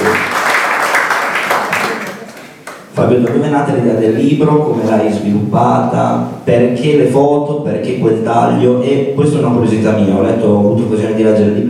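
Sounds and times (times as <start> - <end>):
audience applause: 0.0 - 2.9
speech: 3.0 - 11.6.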